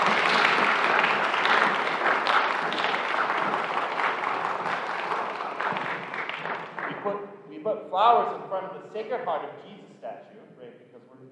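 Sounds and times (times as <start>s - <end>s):
audience applause: 0.0s - 7.1s
speech: 8.0s - 9.7s.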